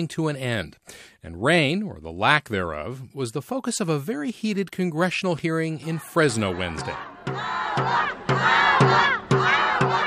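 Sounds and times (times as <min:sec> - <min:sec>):
speech: 0:00.0 - 0:09.2
protesters shouting agua on the steps of Fresno City Hall: 0:05.8 - 0:10.0.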